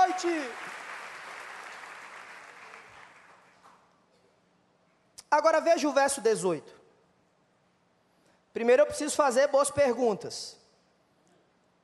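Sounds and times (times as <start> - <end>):
audience applauding: 0.0 - 3.8
speech: 0.2 - 0.8, 5.3 - 6.8, 8.6 - 10.6.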